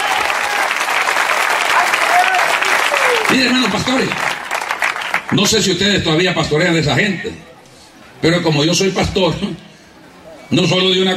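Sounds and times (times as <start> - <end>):
audience applause: 0.0 - 5.7
speech: 3.3 - 4.3, 5.3 - 7.5, 8.2 - 9.7, 10.5 - 11.1.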